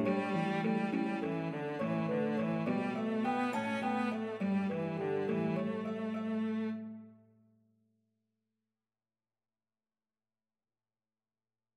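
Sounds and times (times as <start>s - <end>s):
harp: 0.0s - 7.0s
cello in C: 0.0s - 7.2s.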